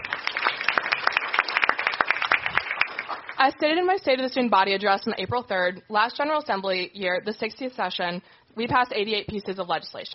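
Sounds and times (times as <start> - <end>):
audience applause: 0.0 - 3.4
speech: 3.4 - 10.1.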